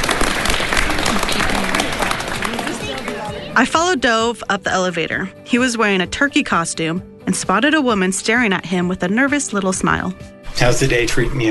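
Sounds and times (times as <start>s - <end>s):
applause: 0.0s - 3.6s
speech: 3.6s - 11.4s.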